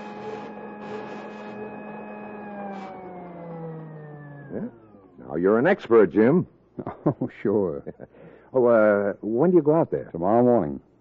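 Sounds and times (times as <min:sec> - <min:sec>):
electric buzzer sounding: 0:00.0 - 0:05.0
speech: 0:04.6 - 0:10.9.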